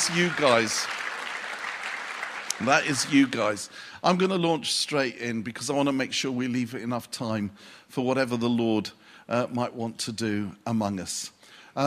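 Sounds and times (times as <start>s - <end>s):
speech: 0.0s - 1.0s, 2.6s - 11.8s
audience clapping: 0.0s - 3.8s.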